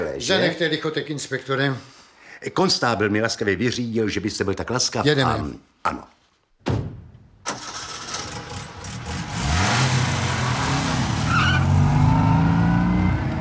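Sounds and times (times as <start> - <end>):
speech: 0.2 - 6.8
early motor car engine drone: 7.5 - 13.3
early motor car tyres skidding to a stop: 7.5 - 13.3.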